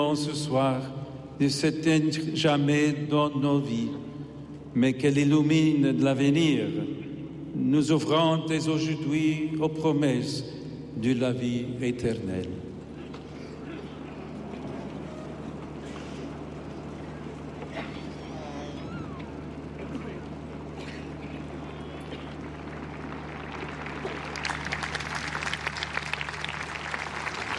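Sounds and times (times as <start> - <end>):
speech: 0.0 - 4.1, 4.7 - 7.0, 7.6 - 12.6
pilgrims applauding after papal speech: 13.1 - 27.5.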